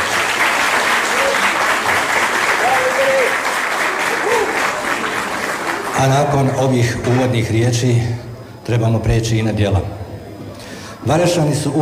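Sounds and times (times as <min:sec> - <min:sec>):
audience applause at an evening cultural event: 0:00.0 - 0:07.4
speech: 0:06.0 - 0:10.0, 0:11.0 - 0:11.8.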